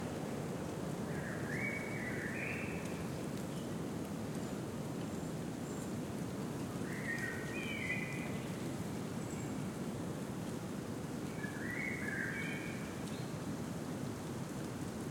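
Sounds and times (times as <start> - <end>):
gentle wind in a deciduous forest at noon in spring: 0.0 - 15.0.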